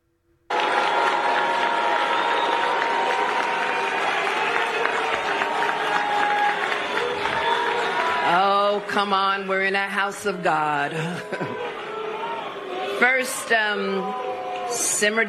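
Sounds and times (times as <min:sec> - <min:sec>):
crowd booing and jeering at a ceremony held in a church: 0:00.5 - 0:15.2
speech: 0:09.0 - 0:11.6, 0:13.0 - 0:15.2
laughter: 0:10.8 - 0:12.3.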